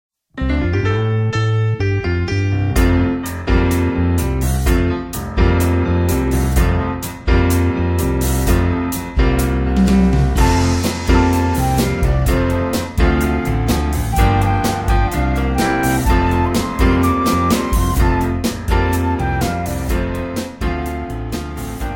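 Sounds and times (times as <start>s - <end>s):
instrumental music: 0.4s - 21.9s.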